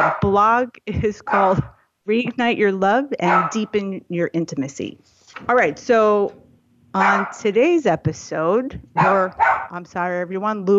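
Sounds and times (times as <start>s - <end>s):
dog barking: 0.0s - 0.3s, 1.3s - 1.7s, 3.2s - 3.7s, 7.0s - 7.4s, 9.0s - 9.8s
speech: 0.0s - 10.7s.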